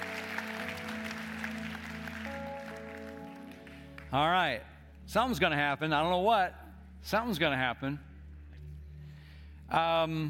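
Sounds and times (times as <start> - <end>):
audience applause: 0.0 - 4.3
speech: 4.1 - 8.1, 9.7 - 10.2.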